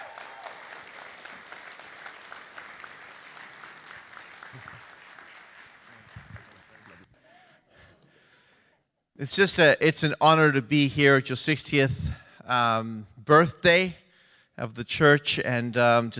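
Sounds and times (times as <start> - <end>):
church audience applause welcoming a guest minister at the church's 60th birthday: 0.0 - 7.4
speech: 9.2 - 14.0, 14.6 - 16.1.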